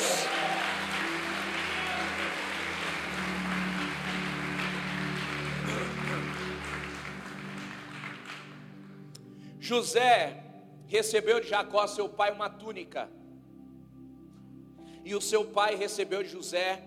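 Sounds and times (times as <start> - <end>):
crowd clapping: 0.0 - 9.2
speech: 9.7 - 13.2, 15.0 - 16.8.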